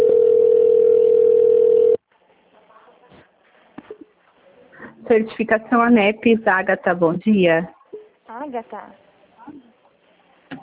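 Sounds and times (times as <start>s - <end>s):
telephone ringing tone while a call connects to an extension: 0.0s - 2.0s
speech: 5.1s - 9.0s.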